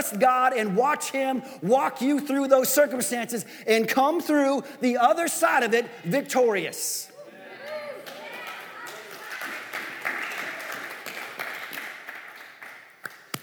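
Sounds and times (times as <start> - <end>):
speech: 0.0 - 7.1
person clapping: 8.1 - 13.4.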